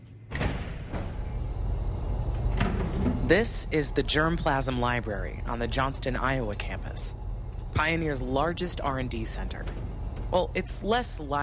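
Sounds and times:
secure door opening: 0.3 - 3.4
speech: 3.3 - 7.2, 7.8 - 11.4.

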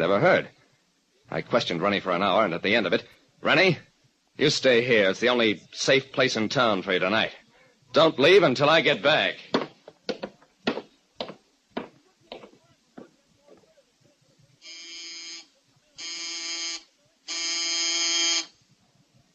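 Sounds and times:
speech: 0.0 - 0.6, 1.3 - 9.5
sharp knocks or footsteps: 9.5 - 13.1
electric doorbell buzzing: 14.6 - 18.5.

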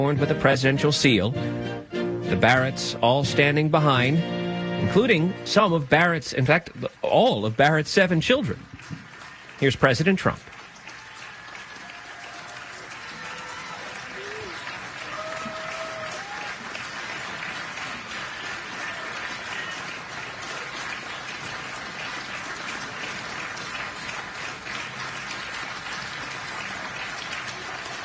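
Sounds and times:
speech: 0.0 - 8.7, 9.6 - 10.5
applause: 5.6 - 28.0.

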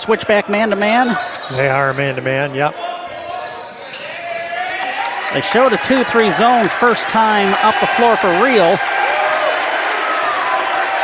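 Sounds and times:
speech: 0.0 - 2.9, 5.3 - 9.0
applause from Cardinals team bench: 5.3 - 11.0.

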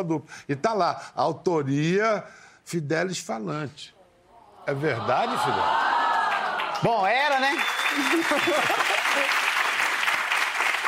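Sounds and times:
speech: 0.0 - 4.0, 4.7 - 5.9, 6.8 - 9.4
laughter: 4.7 - 6.5, 7.9 - 9.4
crowd applauding: 5.4 - 10.8.

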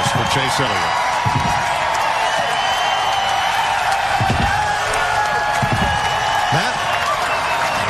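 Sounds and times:
fans cheering at a stock car race: 0.0 - 7.8
scattered claps and shouts: 0.0 - 7.8
speech: 0.4 - 1.8.

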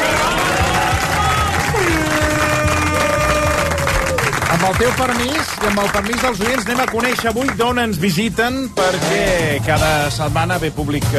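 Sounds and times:
studio audience applause: 0.0 - 8.0
speech: 4.7 - 11.1.

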